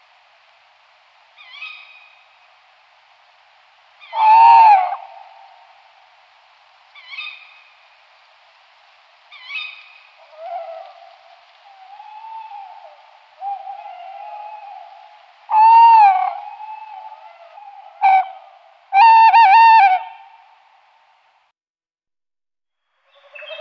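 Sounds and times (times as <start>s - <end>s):
tawny owl calls: 1.4s - 2.2s, 4.0s - 5.5s, 7.0s - 7.7s, 9.3s - 20.3s, 23.1s - 23.5s.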